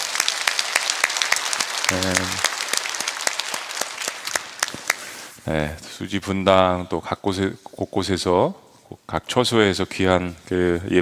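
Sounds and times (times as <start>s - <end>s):
audience applause: 0.0s - 5.3s
speech: 1.9s - 2.5s, 5.5s - 11.0s.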